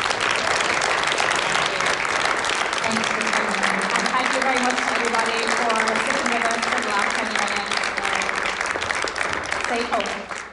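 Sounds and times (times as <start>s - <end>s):
audience applause: 0.0s - 10.5s.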